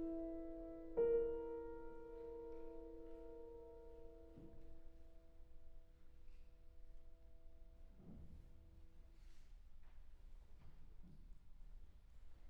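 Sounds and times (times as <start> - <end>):
solo piano arietta: 0.0 - 8.4.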